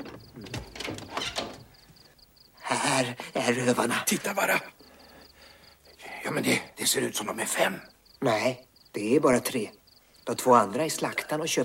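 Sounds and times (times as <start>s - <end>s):
door being opened, latch and hinges clicking: 0.0s - 2.0s
speech: 3.0s - 4.8s, 6.3s - 11.6s.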